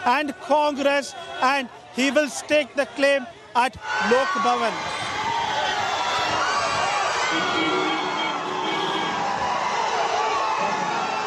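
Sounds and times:
speech: 0.0s - 5.1s
crowd of fans cheering: 3.8s - 11.2s.

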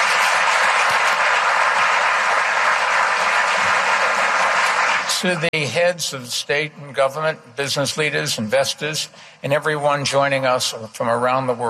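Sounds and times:
audience applause at an international business and investment forum: 0.0s - 5.5s
speech: 5.2s - 11.6s.

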